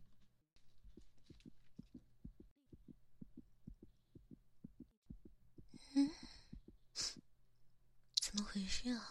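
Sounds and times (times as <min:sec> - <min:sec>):
fast heartbeat through a stethoscope: 0:00.8 - 0:07.3
speech: 0:08.7 - 0:09.0.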